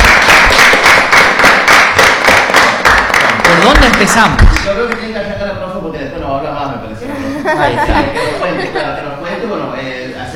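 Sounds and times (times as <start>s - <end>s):
loud crowd applause: 0.0s - 4.7s
speech: 3.9s - 4.6s
laughter: 7.0s - 9.6s.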